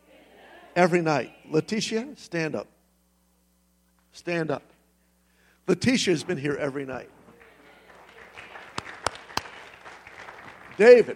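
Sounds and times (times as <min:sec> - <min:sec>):
speech: 0:00.8 - 0:02.8, 0:04.1 - 0:04.7, 0:05.7 - 0:07.2, 0:10.8 - 0:11.1
crowd noise: 0:06.1 - 0:11.1
sharp handclaps: 0:07.4 - 0:11.1.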